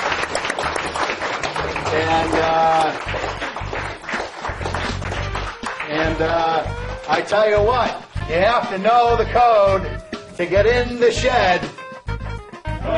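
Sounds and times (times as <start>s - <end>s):
crowd applause: 0.0s - 7.2s
speech: 2.0s - 3.4s, 6.1s - 11.8s.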